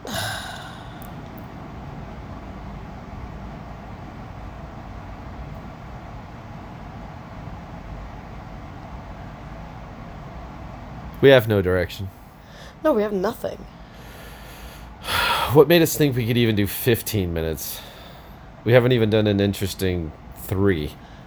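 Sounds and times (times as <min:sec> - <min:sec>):
air conditioner running: 0:00.0 - 0:21.2
speech: 0:11.2 - 0:12.2, 0:12.8 - 0:13.8, 0:15.5 - 0:17.9, 0:18.6 - 0:21.1.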